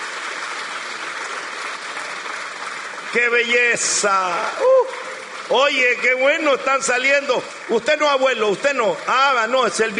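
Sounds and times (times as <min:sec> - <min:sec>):
crowd applause: 0:00.0 - 0:09.9
speech: 0:03.1 - 0:09.9.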